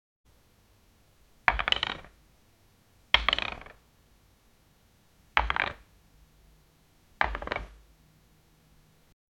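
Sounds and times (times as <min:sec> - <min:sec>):
chess piece moving: 0:01.5 - 0:02.1, 0:03.2 - 0:03.8, 0:05.4 - 0:05.8, 0:07.2 - 0:07.8.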